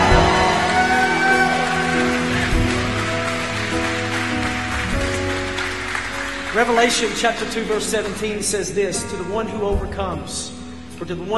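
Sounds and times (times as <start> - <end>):
audience hand clapping: 0.0 - 8.4
sustained organ or keyboard chords: 0.0 - 11.3
speech: 6.6 - 11.3.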